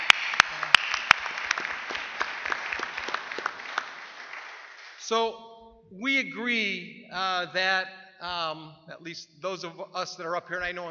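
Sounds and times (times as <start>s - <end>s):
audience applause at an addiction recovery leadership conference: 0.0s - 5.0s
speech: 5.1s - 10.8s.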